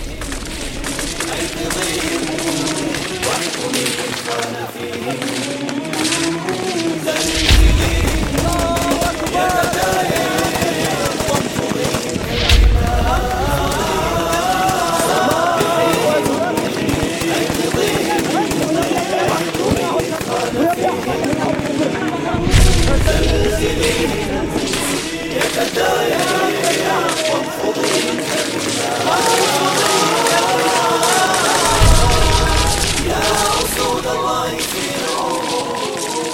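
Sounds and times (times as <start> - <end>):
heavy booms: 0.0 - 4.0, 7.1 - 10.4, 12.2 - 15.2, 22.3 - 26.1, 31.6 - 35.5
laughter: 0.0 - 36.3
rifle and automatic gunfire in a film battle scene: 0.0 - 36.3.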